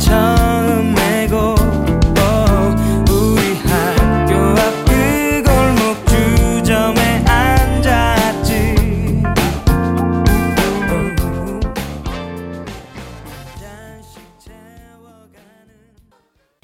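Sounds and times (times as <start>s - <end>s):
pop song playing: 0.0s - 16.0s.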